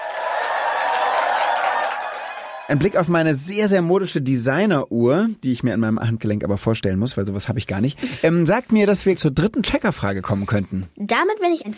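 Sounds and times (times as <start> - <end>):
studio audience clapping during a quiz segment of a children's show: 0.0 - 3.3
speech: 2.7 - 11.7.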